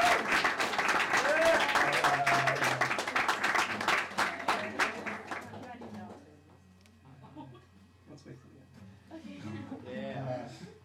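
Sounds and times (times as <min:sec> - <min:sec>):
clapping: 0:00.0 - 0:06.2.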